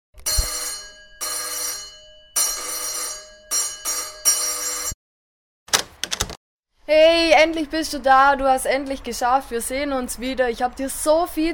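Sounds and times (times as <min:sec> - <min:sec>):
doorbell ringing: 0:00.2 - 0:05.0
speech: 0:06.9 - 0:11.5.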